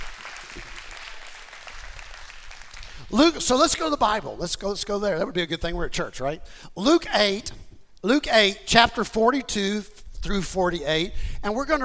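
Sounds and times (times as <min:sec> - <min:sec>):
audience clapping: 0:00.0 - 0:03.3
speech: 0:03.1 - 0:11.8.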